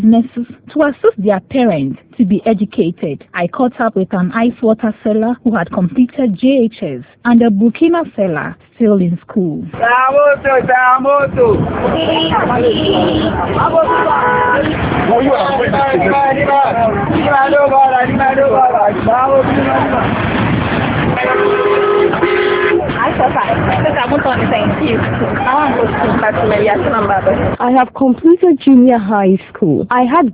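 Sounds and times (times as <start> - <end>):
speech: 0.0 - 20.4, 23.2 - 30.3
car and bus horns honking at a busy lorry station: 9.8 - 27.6
engine noise: 9.8 - 27.7
crowd babble: 10.4 - 28.3.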